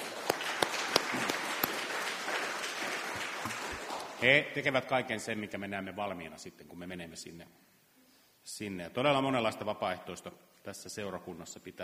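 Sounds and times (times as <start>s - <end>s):
audience applause: 0.0s - 4.2s
speech: 4.2s - 7.7s, 8.5s - 11.8s.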